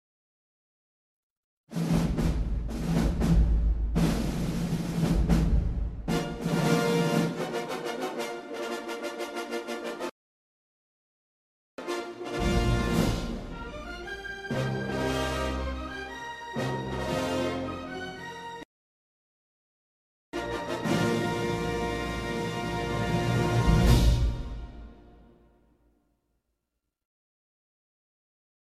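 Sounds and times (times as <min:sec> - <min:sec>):
movie opening music: 0:01.7 - 0:10.1, 0:11.8 - 0:18.6, 0:20.4 - 0:25.5.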